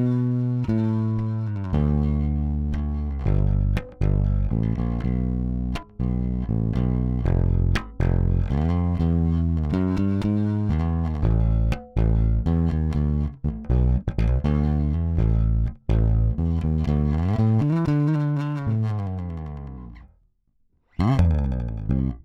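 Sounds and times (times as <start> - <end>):
dry mix finger sound: 0.0 - 20.1, 20.9 - 22.2.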